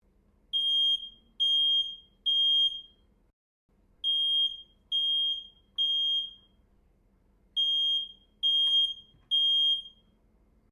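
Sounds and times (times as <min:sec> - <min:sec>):
household smoke detector alarm: 0:00.6 - 0:03.0, 0:04.0 - 0:06.6, 0:07.6 - 0:10.1.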